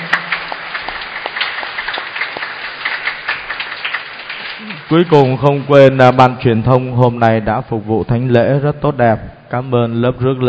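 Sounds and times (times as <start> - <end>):
audience applause: 0.0 - 5.7
speech: 4.9 - 10.4.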